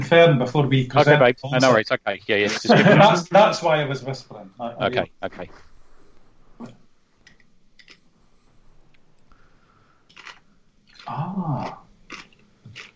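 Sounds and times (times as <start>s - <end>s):
speech: 0.1s - 5.7s, 6.6s - 6.8s, 11.1s - 11.8s
laughter: 0.9s - 5.0s
crunching peanuts while eating: 7.8s - 8.0s, 10.1s - 12.9s.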